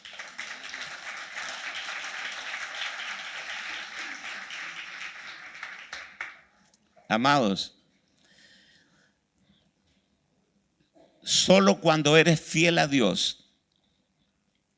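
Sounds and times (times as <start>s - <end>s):
audience applause: 0.0s - 6.5s
speech: 7.1s - 7.8s, 11.4s - 13.4s.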